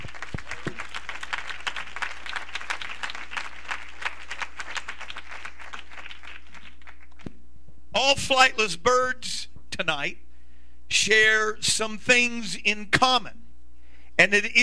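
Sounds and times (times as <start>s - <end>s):
audience clapping hands: 0.0s - 7.4s
speech: 8.0s - 10.2s, 10.9s - 13.4s, 14.2s - 14.6s.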